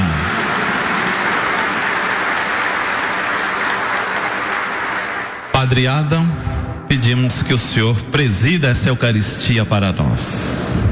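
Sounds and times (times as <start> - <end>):
sustained applause from a large crowd: 0.0 - 5.5
speech: 5.7 - 10.9.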